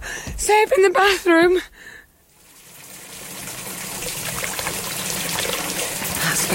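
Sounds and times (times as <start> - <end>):
speech: 0.5 - 2.0, 6.4 - 6.5
water gushing into a bath in a bathroom: 2.3 - 6.5.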